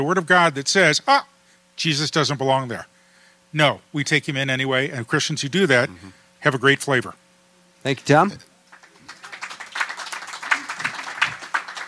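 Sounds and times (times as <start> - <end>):
speech: 0.0 - 2.9, 3.5 - 7.2, 7.8 - 8.5
audience applause: 8.7 - 11.8.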